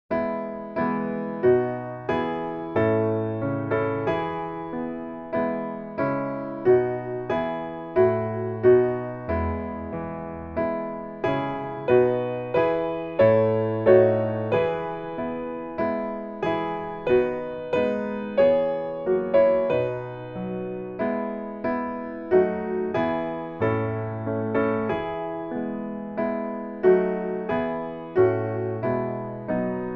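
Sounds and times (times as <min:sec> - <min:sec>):
piano: 0:00.0 - 0:29.9.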